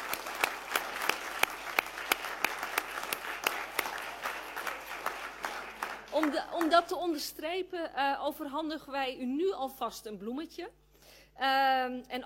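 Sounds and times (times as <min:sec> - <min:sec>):
council meeting audience applauding new council members: 0:00.0 - 0:06.9
speech: 0:06.2 - 0:10.8, 0:11.4 - 0:12.2.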